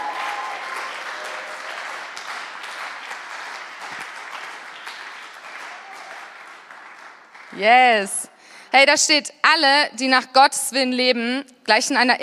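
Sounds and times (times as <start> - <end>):
audience applause: 0.0 - 7.6
speech: 7.6 - 12.2.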